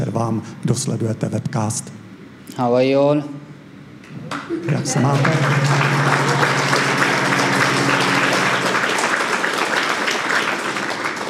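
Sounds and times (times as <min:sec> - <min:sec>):
speech: 0:00.2 - 0:03.4, 0:04.6 - 0:06.1
audience clapping: 0:04.2 - 0:11.2.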